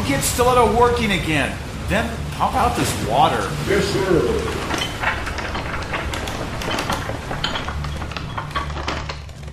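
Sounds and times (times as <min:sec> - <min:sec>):
low rumbling drone: 0:00.0 - 0:09.1
speech: 0:00.1 - 0:04.9
heavy metal door hauled shut by hand: 0:03.4 - 0:09.5.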